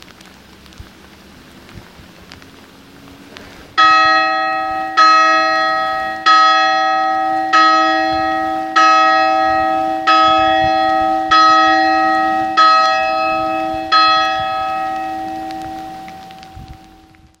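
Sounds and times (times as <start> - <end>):
rain: 0.0 - 17.3
Angelus bell ringing in rain: 3.8 - 17.0.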